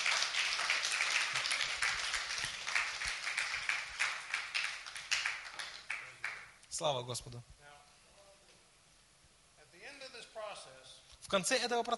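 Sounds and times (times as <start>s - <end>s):
audience applause: 0.0s - 6.4s
speech: 6.8s - 7.6s, 11.3s - 11.9s.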